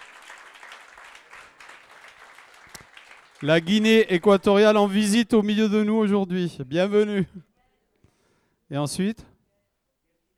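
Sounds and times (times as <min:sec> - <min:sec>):
audience applause: 0:00.0 - 0:05.0
speech: 0:03.4 - 0:07.5, 0:08.7 - 0:09.3.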